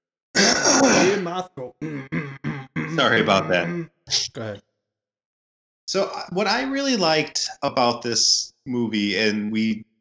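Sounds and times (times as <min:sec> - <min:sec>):
throat clearing: 0:00.4 - 0:03.9
speech: 0:00.8 - 0:02.2, 0:03.0 - 0:04.7, 0:05.9 - 0:09.9.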